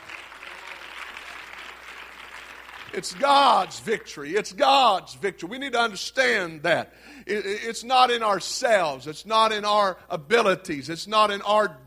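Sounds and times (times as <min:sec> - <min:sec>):
audience clapping hands: 0:00.0 - 0:04.2
speech: 0:02.9 - 0:11.8.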